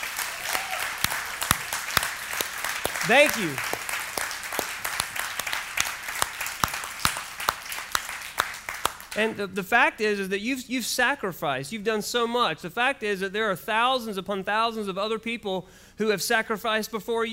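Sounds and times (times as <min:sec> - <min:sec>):
audience applause for veterans: 0:00.0 - 0:09.3
speech: 0:03.1 - 0:03.8, 0:09.2 - 0:17.3.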